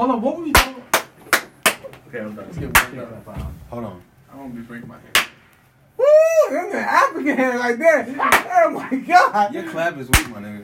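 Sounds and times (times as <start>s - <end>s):
speech: 0.0s - 0.8s, 2.1s - 5.3s, 6.5s - 10.6s
loud hand clap: 0.5s - 2.0s, 2.7s - 3.0s, 5.1s - 5.4s.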